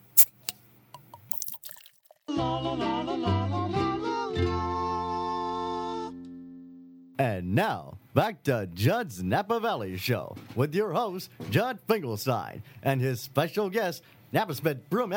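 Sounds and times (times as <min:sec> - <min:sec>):
beer being cracked open: 0:00.0 - 0:02.2
beer trickling as it is poured: 0:01.1 - 0:02.3
music: 0:02.3 - 0:07.2
speech: 0:07.4 - 0:15.1.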